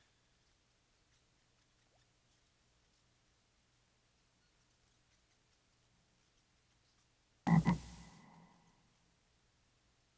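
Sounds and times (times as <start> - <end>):
frog croaking: 7.5 - 8.6.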